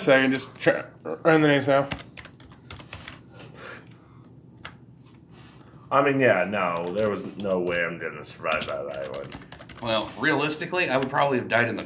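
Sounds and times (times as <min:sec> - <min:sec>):
speech: 0:00.0 - 0:02.1, 0:05.9 - 0:11.8
rapid keyboard typing with plastic key clicks: 0:01.8 - 0:03.2, 0:06.6 - 0:10.1.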